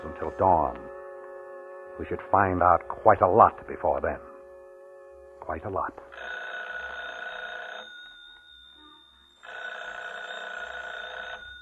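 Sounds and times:
speech: 0.2 - 0.9, 2.0 - 4.3, 5.4 - 6.4
telephone bell ringing: 6.1 - 11.6.

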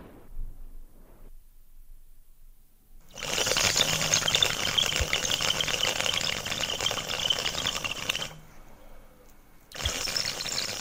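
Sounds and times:
old man drawing smoke through a tobacco water pipe: 3.0 - 8.5, 9.7 - 10.7.

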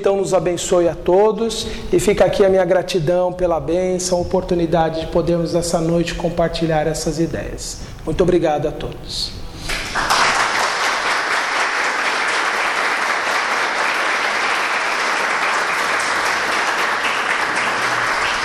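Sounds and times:
speech: 0.0 - 9.4
audience applause: 9.7 - 18.4.

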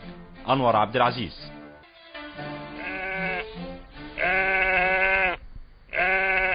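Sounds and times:
speech: 0.5 - 1.5
sheep bleating in a 1962 Egyptian radio comedy: 2.7 - 6.5.

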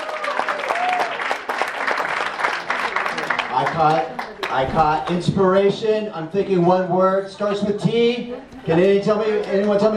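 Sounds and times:
cheering voices in an audience: 0.0 - 4.6
audience applause after a team performance: 0.0 - 5.3
speech: 3.6 - 9.9.

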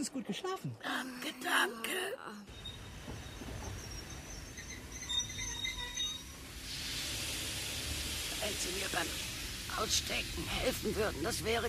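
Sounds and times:
speech: 0.0 - 3.4, 8.4 - 11.6
train arriving at station: 2.5 - 11.6.

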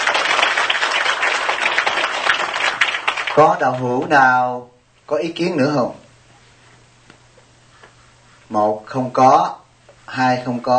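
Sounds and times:
audience applause: 0.0 - 3.9
speech: 3.4 - 6.0, 8.5 - 10.7.

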